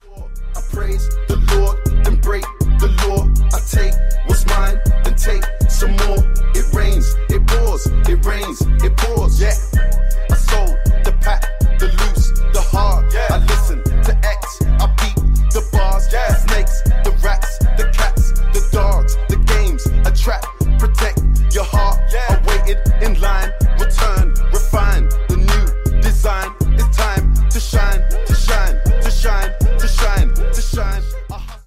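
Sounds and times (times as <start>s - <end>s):
English remix: 0.0s - 31.6s.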